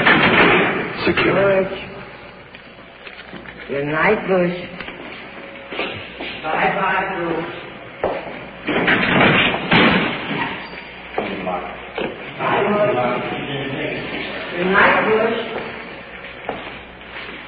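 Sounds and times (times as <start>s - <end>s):
jail cell door opening and closing: 0.0s - 1.6s, 8.6s - 11.4s
speech: 1.0s - 1.9s, 3.7s - 4.8s, 6.4s - 7.6s, 12.4s - 15.6s.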